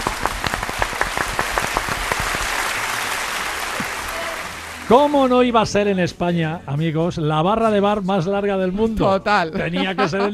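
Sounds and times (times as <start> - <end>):
applause: 0.0 - 5.4
speech: 4.9 - 10.3
laughter: 9.5 - 10.3.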